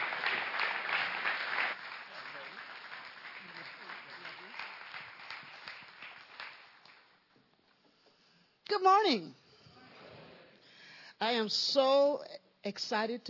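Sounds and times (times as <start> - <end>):
audience applause: 0.0 - 7.2
speech: 8.8 - 9.4, 11.2 - 13.2.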